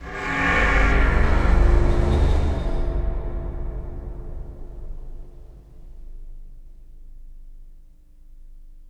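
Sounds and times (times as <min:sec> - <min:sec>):
scary cinematic impact: 0:00.0 - 0:07.2.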